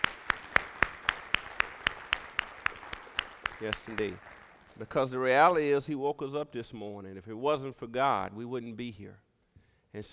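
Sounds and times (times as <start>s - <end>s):
audience clapping in unison in praise: 0.0s - 5.4s
speech: 3.6s - 9.2s, 9.9s - 10.1s.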